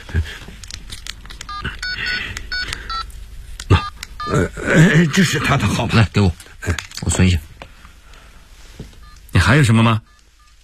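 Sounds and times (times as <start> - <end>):
mobile phone keypad beeps: 1.5 - 3.1, 3.8 - 5.4, 9.0 - 9.3, 10.0 - 10.6
speech: 4.3 - 7.5, 9.5 - 10.1.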